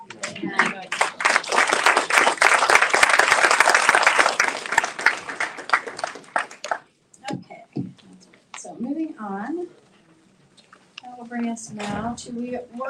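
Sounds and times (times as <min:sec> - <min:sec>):
crowd clapping at a school board meeting: 0:00.0 - 0:06.9
speech: 0:11.6 - 0:12.8.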